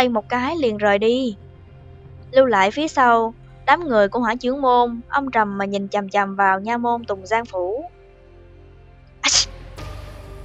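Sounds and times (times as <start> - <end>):
speech: 0.0 - 1.4, 2.3 - 8.0
man waking up sneezing: 9.2 - 9.5.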